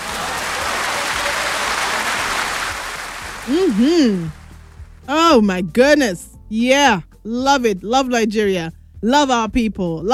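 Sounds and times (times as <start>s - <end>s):
audience applause: 0.0s - 4.5s
speech: 3.5s - 4.4s, 5.1s - 10.1s.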